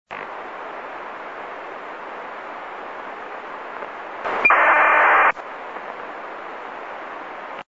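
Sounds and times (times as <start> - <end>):
ACARS data transmission: 4.3 - 5.3.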